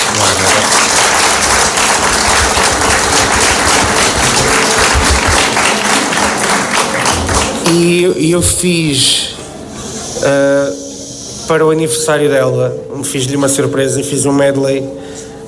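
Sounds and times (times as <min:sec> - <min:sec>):
audience applause: 0:00.0 - 0:08.0
speech: 0:07.7 - 0:09.3, 0:10.2 - 0:10.8, 0:11.5 - 0:15.1.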